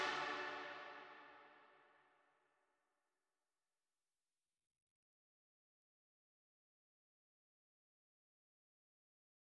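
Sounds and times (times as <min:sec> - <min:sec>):
bells: 0:00.0 - 0:01.0
brass instruments: 0:00.0 - 0:01.3.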